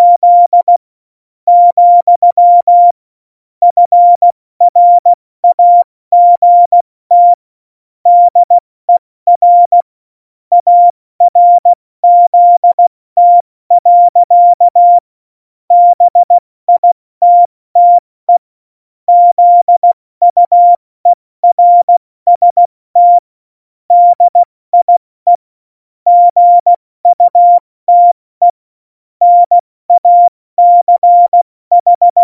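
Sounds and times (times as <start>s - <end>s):
CW Morse code beeps: 0.0s - 0.8s, 1.5s - 3.0s, 3.7s - 7.4s, 8.1s - 8.6s, 9.3s - 9.9s, 10.5s - 15.0s, 15.7s - 18.4s, 19.1s - 20.8s, 21.4s - 23.2s, 23.9s - 25.4s, 26.1s - 28.6s, 29.2s - 32.2s.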